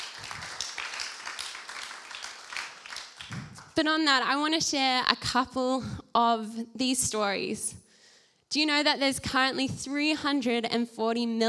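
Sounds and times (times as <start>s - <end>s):
crowd applauding: 0.0s - 3.8s
speech: 3.3s - 7.8s, 8.5s - 11.4s.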